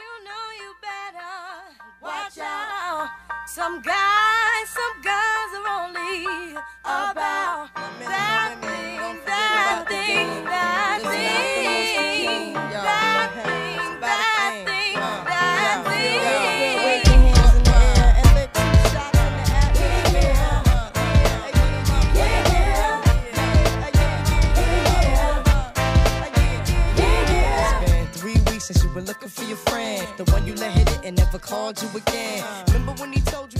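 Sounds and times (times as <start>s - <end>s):
speech: 3.0s - 5.2s
person singing over light backing in a hip hop and old school soul song: 3.7s - 33.5s
horn section: 17.0s - 28.1s
loud punchy drum beat: 17.1s - 29.0s, 29.7s - 31.4s, 32.1s - 33.5s.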